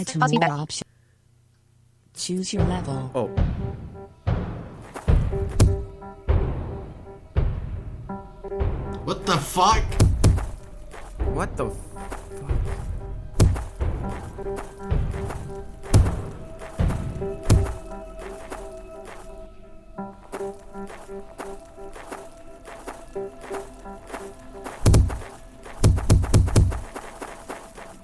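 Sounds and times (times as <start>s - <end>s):
speech: 0.0s - 1.0s, 2.2s - 3.5s, 9.1s - 10.0s, 11.4s - 12.1s
video game character running into a wall: 4.3s - 6.7s, 9.9s - 11.2s, 12.2s - 18.5s, 24.6s - 27.4s
faint sustained game tones: 5.1s - 28.0s.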